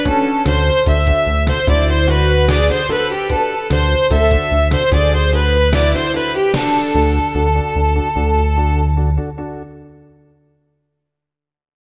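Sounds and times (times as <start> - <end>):
swamptronica music: 0.0 - 9.0.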